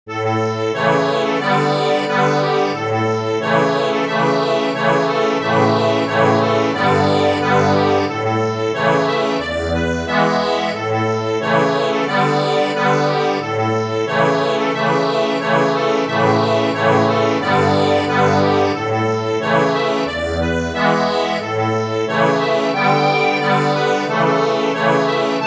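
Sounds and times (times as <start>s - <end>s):
accordion: 0.1s - 25.4s.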